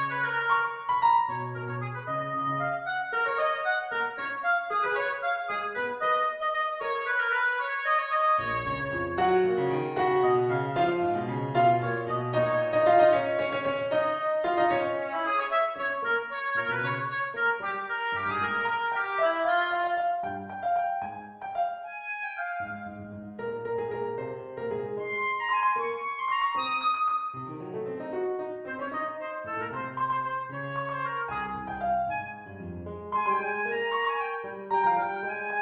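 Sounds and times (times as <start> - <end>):
oboe vignette: 0.0 - 35.6.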